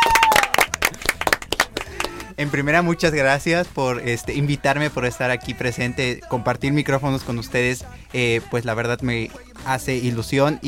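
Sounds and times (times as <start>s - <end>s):
several people clapping: 0.0s - 2.6s
speech: 2.4s - 10.6s.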